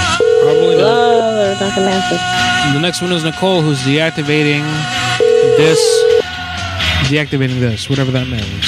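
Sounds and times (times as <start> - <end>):
unanswered telephone call ringing tone: 0.1 - 2.2, 5.2 - 6.2
speech: 1.6 - 6.1, 7.1 - 8.6.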